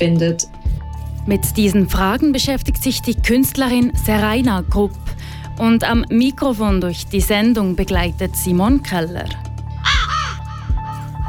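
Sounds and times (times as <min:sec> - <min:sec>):
speech: 0:00.0 - 0:00.6, 0:01.2 - 0:09.5
raven cawing: 0:09.8 - 0:11.2.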